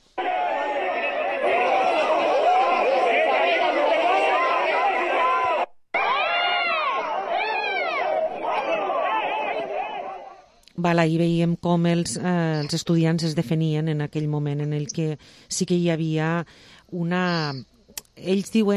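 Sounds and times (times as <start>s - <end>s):
protest crowd shouting and screaming during a police charge: 0.2s - 10.5s
speech: 10.9s - 18.7s.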